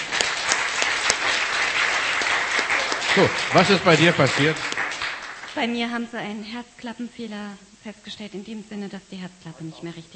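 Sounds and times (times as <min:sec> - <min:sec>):
audience applause: 0:00.0 - 0:05.6
speech: 0:03.2 - 0:04.7, 0:05.6 - 0:10.1.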